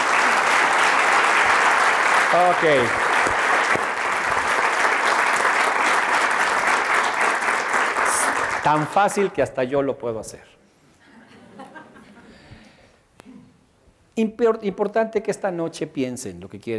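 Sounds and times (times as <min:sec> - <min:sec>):
audience applause: 0:00.0 - 0:09.3
speech: 0:02.3 - 0:03.0, 0:08.7 - 0:10.6, 0:14.2 - 0:16.7
laughter: 0:11.0 - 0:12.4.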